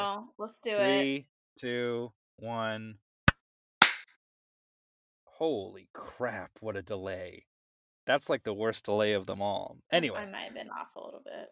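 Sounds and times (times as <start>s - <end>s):
speech: 0.0s - 3.0s, 5.4s - 11.5s
sharp hand claps for audio sync: 3.8s - 4.1s.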